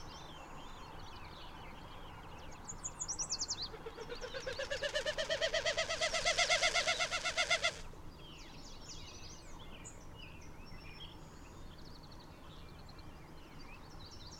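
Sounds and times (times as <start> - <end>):
birds chirping: 2.4 - 7.8.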